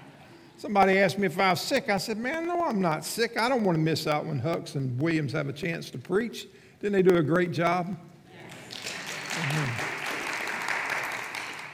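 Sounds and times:
speech: 0.6s - 8.1s
audience applause: 8.4s - 11.7s.

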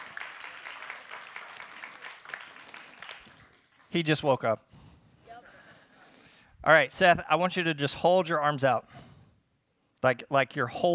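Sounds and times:
small group applauding: 0.0s - 4.3s
speech: 3.9s - 4.7s, 6.6s - 9.0s, 10.0s - 10.9s.

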